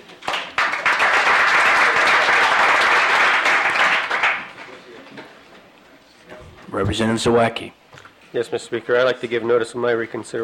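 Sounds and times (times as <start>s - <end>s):
applause welcoming a guest in a legislative chamber: 0.0s - 4.7s
speech: 6.8s - 10.4s.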